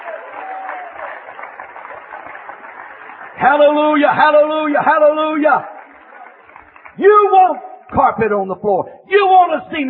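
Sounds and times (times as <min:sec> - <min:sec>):
audience applause: 0:00.0 - 0:07.4
speech: 0:03.4 - 0:05.7, 0:07.0 - 0:09.8.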